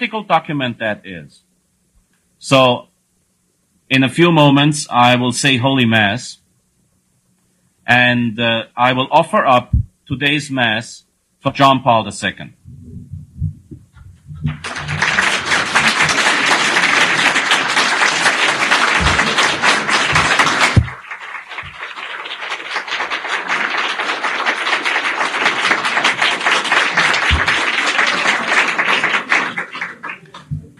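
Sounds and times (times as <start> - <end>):
speech: 0.0 - 1.5, 2.4 - 2.9, 3.9 - 6.4, 7.9 - 13.1
audience applause: 14.4 - 30.7.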